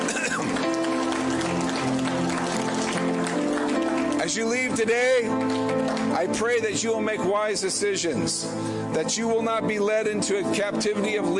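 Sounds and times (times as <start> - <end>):
audience clapping: 0.0 - 6.7
speech: 4.4 - 11.3.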